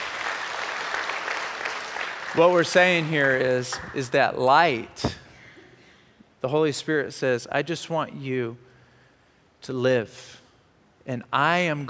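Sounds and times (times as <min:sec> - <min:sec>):
round of applause: 0:00.0 - 0:03.9
speech: 0:02.4 - 0:05.2, 0:06.4 - 0:08.7, 0:09.6 - 0:10.4, 0:11.1 - 0:11.8.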